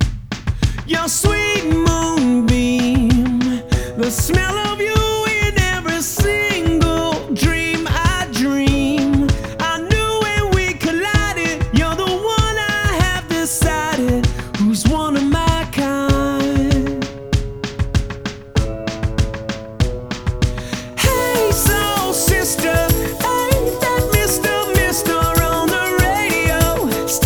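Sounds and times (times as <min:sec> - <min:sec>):
music without guitar: 0:01.4 - 0:27.2.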